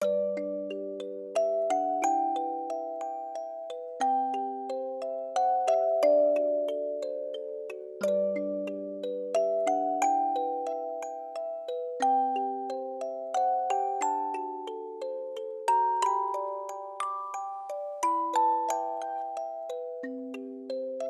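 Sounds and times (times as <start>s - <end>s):
music box: 0.0s - 21.0s.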